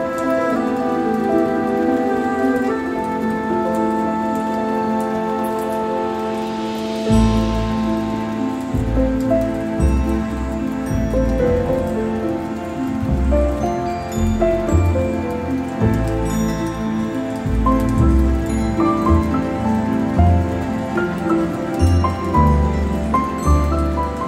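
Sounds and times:
piano music: 0.0 - 24.2
thunderstorm: 0.0 - 24.2.

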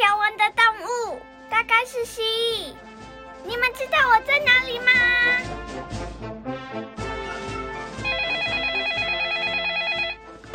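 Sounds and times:
upbeat music: 0.0 - 10.5
speech: 2.0 - 2.8, 3.4 - 6.4
telephone with warbling electronic ringtone: 8.0 - 10.5.

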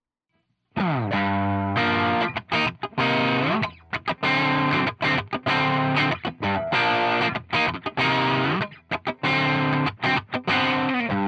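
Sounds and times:
distorted effects-heavy guitar riff with midrange boosted: 0.8 - 11.2.

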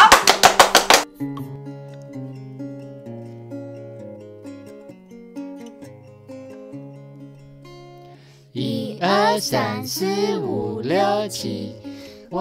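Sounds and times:
group applauding: 0.0 - 1.1
speech: 9.0 - 12.3.

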